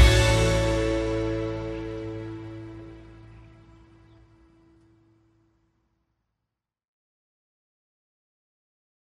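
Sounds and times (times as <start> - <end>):
peaceful instrumental background music: 0.0 - 4.4.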